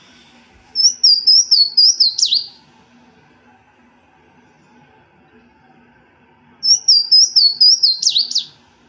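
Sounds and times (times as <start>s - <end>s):
Louisiana waterthrush song: 0.8s - 2.7s, 6.6s - 8.7s.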